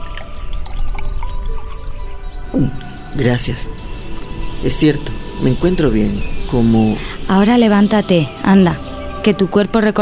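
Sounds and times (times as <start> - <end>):
drinking water pouring into a cup: 0.0 - 2.4
speech: 2.6 - 3.8, 4.6 - 10.0.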